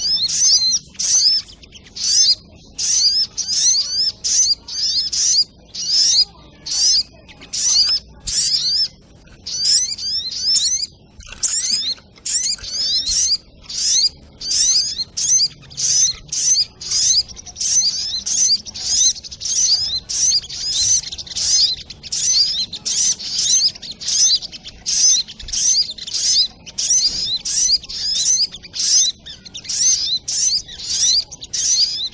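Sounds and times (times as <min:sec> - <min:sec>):
Little Spiderhunter singing shrill squeaky notes: 0:00.0 - 0:32.1.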